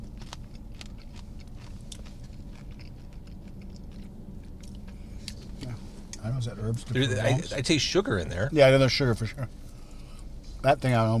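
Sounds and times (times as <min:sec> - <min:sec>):
person chewing popcorn and pretzel snacks: 0:00.0 - 0:05.0
speech: 0:06.3 - 0:09.6, 0:10.6 - 0:11.1.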